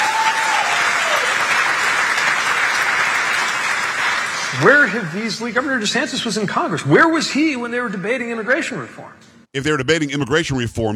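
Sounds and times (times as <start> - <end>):
crowd applauding a political speech: 0.0 - 5.3
speech: 4.6 - 10.9.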